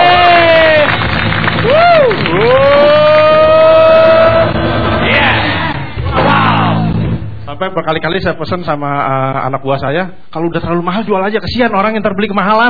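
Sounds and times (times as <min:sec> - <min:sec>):
crowd clapping: 0:00.0 - 0:05.0
large crowd cheering: 0:00.0 - 0:07.0
speech: 0:07.7 - 0:12.6.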